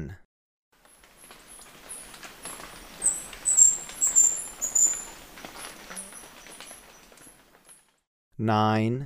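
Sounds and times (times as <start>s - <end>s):
faint rustling: 0.8s - 8.0s
Brown Inca squeaky chips and whistled notes: 0.9s - 7.7s.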